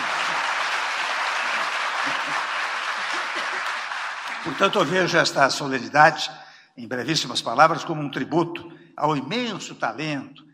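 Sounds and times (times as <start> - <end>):
audience applause: 0.0 - 4.9
speech: 4.4 - 10.4.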